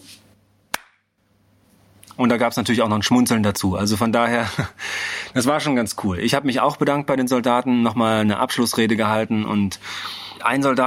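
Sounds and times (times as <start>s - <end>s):
single sharp clap of military-style applause: 0.7s - 1.0s
speech: 2.2s - 10.8s
laughter: 4.4s - 4.8s.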